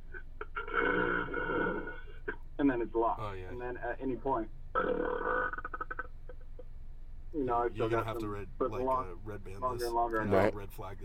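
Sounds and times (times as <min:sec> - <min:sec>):
air being gulped into the stomach: 0:00.4 - 0:02.4, 0:04.7 - 0:06.6
speech: 0:02.7 - 0:05.6, 0:07.3 - 0:11.0.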